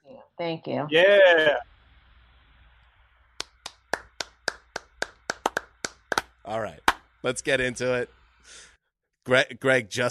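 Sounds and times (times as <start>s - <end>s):
speech: 0.4s - 1.7s, 6.5s - 8.7s, 9.3s - 10.0s
golf clap: 3.4s - 7.1s.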